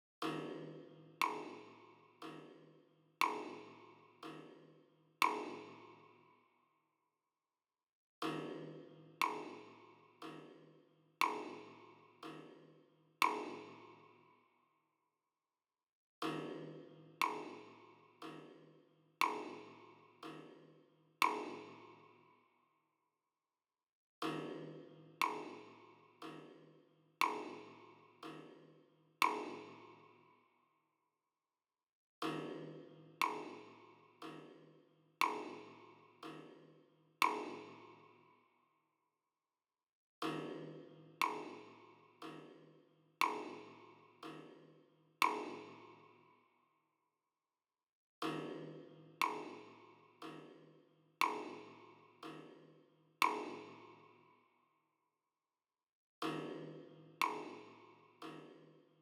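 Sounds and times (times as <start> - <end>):
drums and percussion: 0.2 - 6.0, 8.2 - 13.8, 16.2 - 21.8, 24.2 - 29.8, 32.2 - 38.0, 40.2 - 46.0, 48.2 - 54.0, 56.2 - 58.8.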